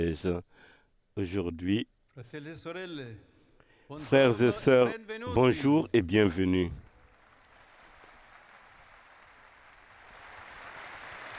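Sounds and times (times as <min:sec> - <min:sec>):
speech: 0:00.0 - 0:03.3, 0:03.9 - 0:06.8
sustained applause: 0:06.8 - 0:11.3.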